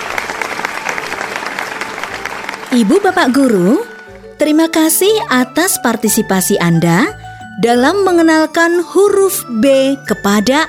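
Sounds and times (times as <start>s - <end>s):
applause for clever children in a lesson on the letter B: 0.0s - 4.3s
speech: 2.7s - 10.6s.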